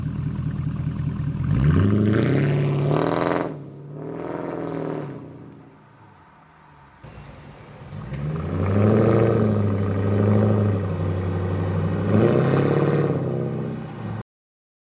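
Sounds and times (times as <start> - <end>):
Mercedes CLS500 W219: 0.0 - 14.2.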